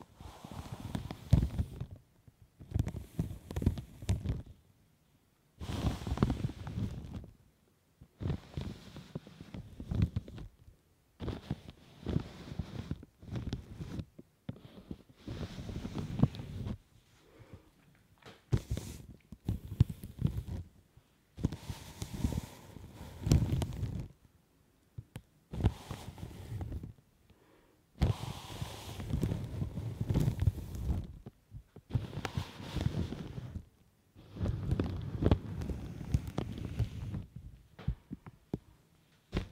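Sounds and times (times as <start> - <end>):
latex gloves rubbing and brushing against the mic: 0.0 - 2.0, 2.6 - 4.6, 5.6 - 7.3, 8.2 - 10.5, 11.2 - 17.2, 18.5 - 20.8, 21.4 - 24.2, 25.5 - 27.0, 28.0 - 31.3, 31.9 - 37.4.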